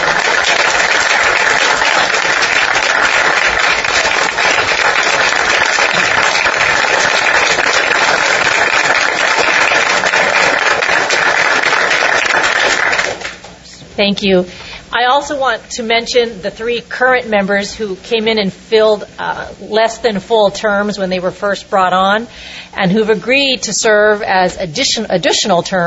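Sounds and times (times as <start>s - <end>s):
round of applause: 0.0s - 13.5s
speech: 14.0s - 25.8s.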